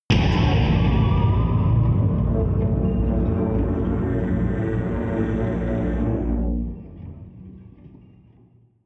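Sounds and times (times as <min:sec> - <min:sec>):
drum: 0:00.1 - 0:05.1
drones: 0:00.1 - 0:07.7
eerie synth: 0:00.1 - 0:08.4.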